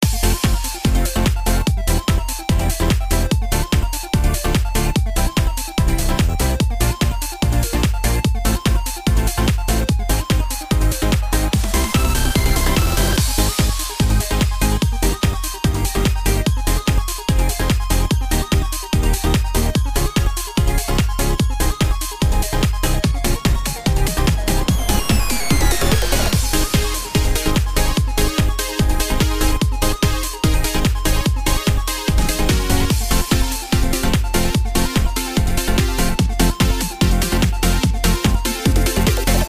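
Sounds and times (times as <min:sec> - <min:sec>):
background music: 0:00.0 - 0:39.4.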